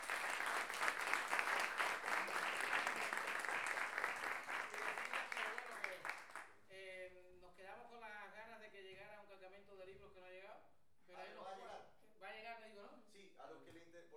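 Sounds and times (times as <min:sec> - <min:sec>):
audience applause for the hosts of a masterclass: 0:00.0 - 0:06.4.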